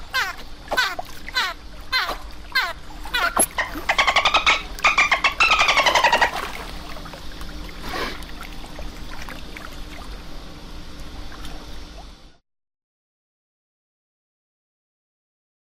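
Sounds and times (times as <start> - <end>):
dolphin burst-pulse calls: 0.0 - 6.8.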